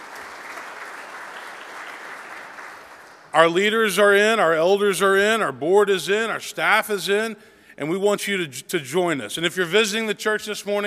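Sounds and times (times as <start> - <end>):
crowd applause: 0.0 - 3.3
speech: 3.3 - 10.8.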